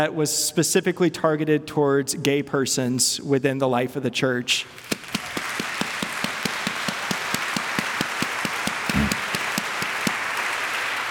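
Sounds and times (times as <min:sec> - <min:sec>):
speech: 0:00.0 - 0:05.4
audience applause: 0:04.8 - 0:11.0.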